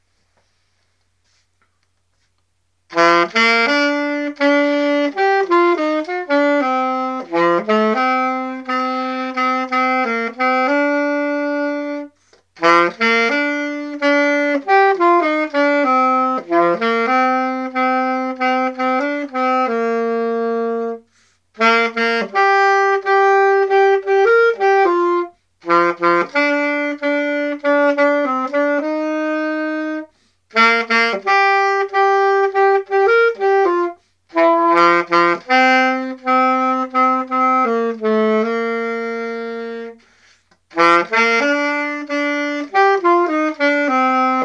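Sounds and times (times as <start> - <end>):
saxophone: 1.2 - 44.4.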